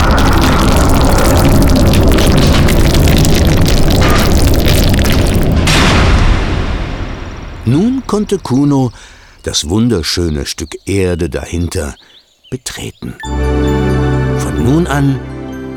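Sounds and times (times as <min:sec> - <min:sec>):
crackling grit: 0:00.0 - 0:09.0
thunderous rumbling as a gorge closes: 0:00.0 - 0:09.5
speech: 0:08.1 - 0:13.8, 0:14.4 - 0:15.4.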